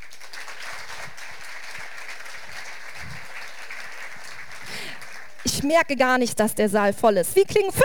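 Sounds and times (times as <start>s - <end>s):
audience applause: 0.0s - 5.5s
speech: 5.6s - 7.8s.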